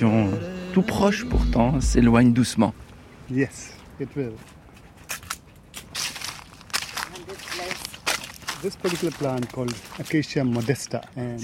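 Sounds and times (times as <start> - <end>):
speech: 0.8 - 4.6, 8.6 - 11.4
footsteps on large dry leaves: 5.8 - 11.0.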